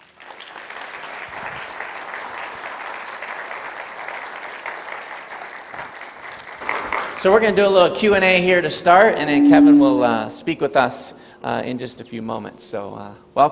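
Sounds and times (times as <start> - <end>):
audience applause at a church gathering: 0.0 - 7.4
speech: 7.2 - 13.4.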